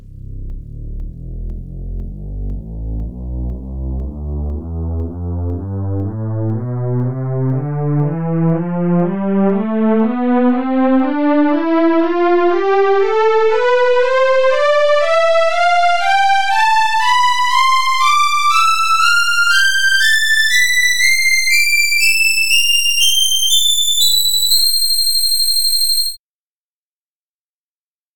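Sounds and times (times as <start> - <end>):
warm synth pad playing a scale: 0.0 - 26.2.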